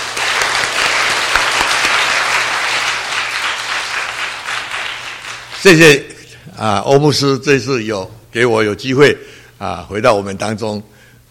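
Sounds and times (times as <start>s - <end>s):
audience applause: 0.0s - 5.9s
speech: 5.6s - 10.9s.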